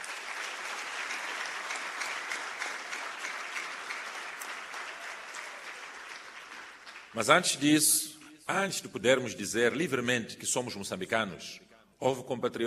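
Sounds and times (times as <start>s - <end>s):
audience applause: 0.0s - 7.5s
speech: 7.1s - 12.6s.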